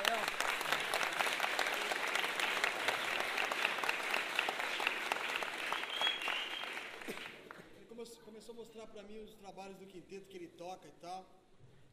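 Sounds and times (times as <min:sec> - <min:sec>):
audience applauding: 0:00.0 - 0:07.7
speech: 0:08.9 - 0:11.4.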